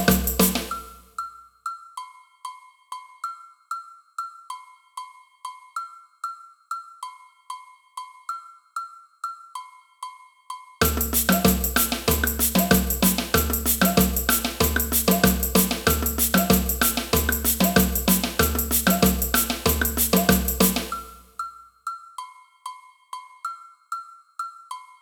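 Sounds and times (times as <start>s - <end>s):
agogo bells in a samba band: 0.0s - 1.0s, 10.8s - 21.2s.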